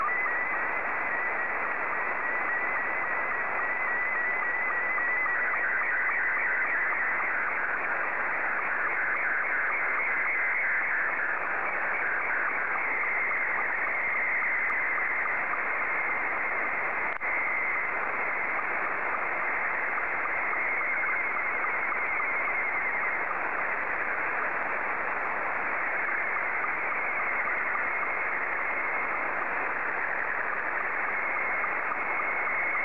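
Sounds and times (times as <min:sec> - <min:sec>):
Scottie 2 slow-scan television signal: 0:00.0 - 0:32.8.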